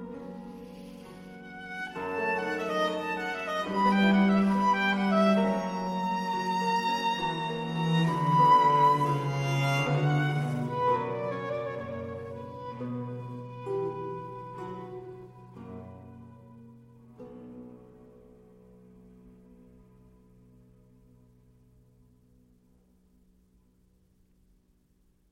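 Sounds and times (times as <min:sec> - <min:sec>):
violin and strings concerto in G minor largo: 0:00.0 - 0:15.6.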